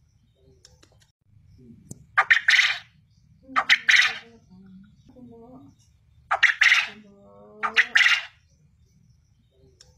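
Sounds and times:
quail calling in rasping triple phrases: 2.2 - 2.9, 3.5 - 4.4, 6.3 - 8.4.

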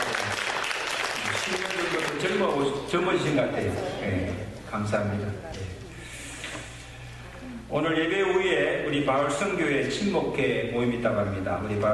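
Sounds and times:
audience applause: 0.0 - 2.8
speech: 2.2 - 5.8, 7.7 - 11.9.

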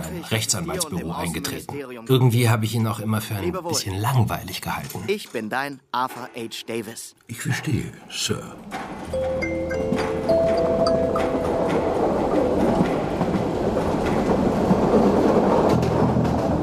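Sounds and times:
train travelling to Flensburg rolling on rails: 0.0 - 5.2, 8.1 - 16.6
speech: 0.2 - 9.9
faint rhythmic clatter of train wheels: 8.5 - 16.6
held tones ringing: 9.1 - 12.4.

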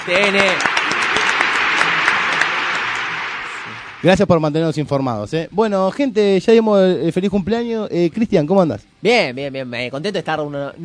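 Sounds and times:
speech: 0.0 - 0.8, 4.0 - 10.8
applause: 0.0 - 4.3.

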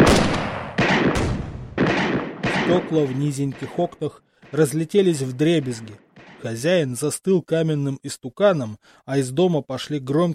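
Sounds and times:
loud gunshots: 0.0 - 6.7
speech: 2.7 - 10.3.

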